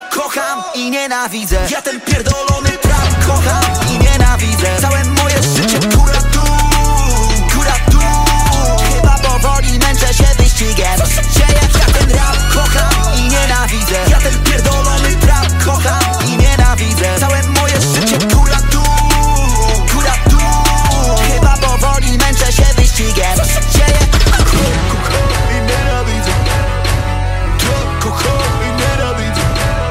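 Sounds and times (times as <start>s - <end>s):
rap music: 0.0s - 29.8s.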